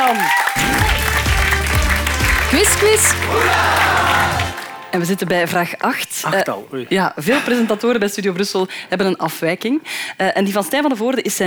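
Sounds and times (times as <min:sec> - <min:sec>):
audience applause: 0:00.0 - 0:05.0
speech: 0:00.1 - 0:00.7, 0:02.5 - 0:11.4.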